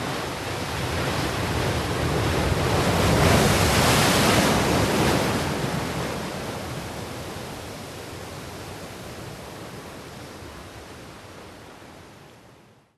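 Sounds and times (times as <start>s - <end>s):
sea waves crashing on rocks: 0.0s - 8.4s.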